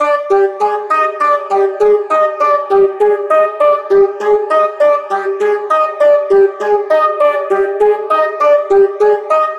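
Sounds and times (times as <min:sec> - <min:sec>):
music loop: 0:00.0 - 0:09.5.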